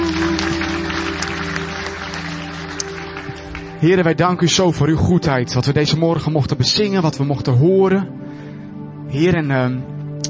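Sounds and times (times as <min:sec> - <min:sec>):
crowd applauding: 0:00.0 - 0:04.2
speech: 0:03.8 - 0:08.2, 0:09.1 - 0:10.2.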